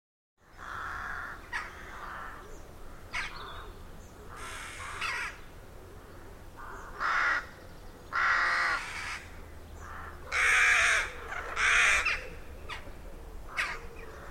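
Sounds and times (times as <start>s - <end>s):
rooks cawing at a rookery in a derelict abbey: 0.4s - 12.9s, 13.5s - 14.2s.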